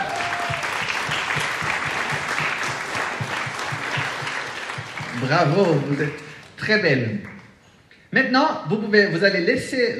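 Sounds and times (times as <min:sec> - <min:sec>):
audience applause: 0:00.0 - 0:06.6
speech: 0:05.2 - 0:07.4, 0:08.1 - 0:09.9.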